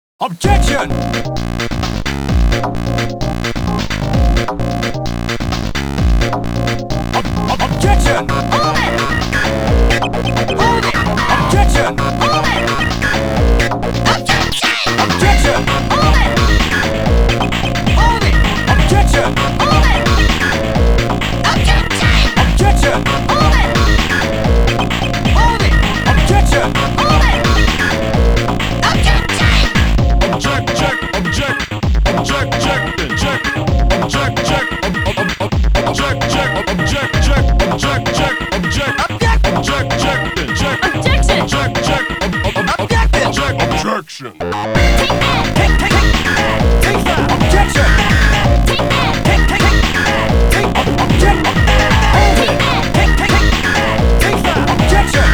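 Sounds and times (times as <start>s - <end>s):
funk music: 0.4s - 55.3s.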